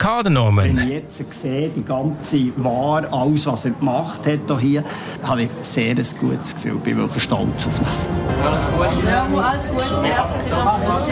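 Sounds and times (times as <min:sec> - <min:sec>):
speech: 0:00.1 - 0:11.1
glasses clinking in a toast: 0:08.8 - 0:10.2.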